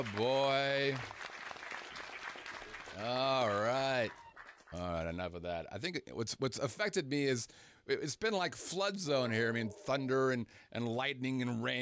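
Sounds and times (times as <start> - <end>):
speech: 0.0 - 1.2, 3.0 - 11.8
applause sound effect: 0.0 - 4.8.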